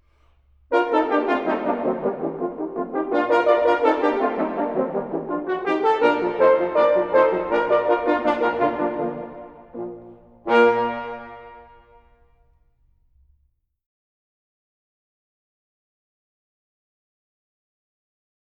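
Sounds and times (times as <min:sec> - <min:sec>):
pizzicato polka: 0:00.0 - 0:12.0.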